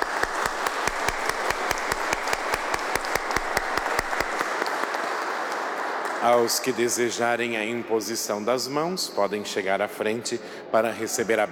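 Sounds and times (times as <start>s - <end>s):
audience applause: 0.0s - 7.5s
speech: 6.2s - 11.5s.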